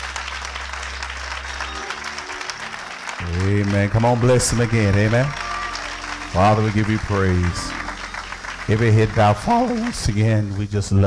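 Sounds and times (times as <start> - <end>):
audience clapping hands: 0.0 - 11.0
speech: 3.2 - 5.5, 6.3 - 7.8, 8.7 - 11.0.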